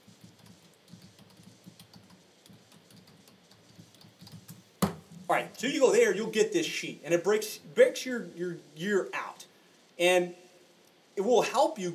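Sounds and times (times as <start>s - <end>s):
typing a web address on a computer keyboard: 0.2s - 4.6s
speech: 5.3s - 9.2s, 10.0s - 10.4s, 11.2s - 11.9s.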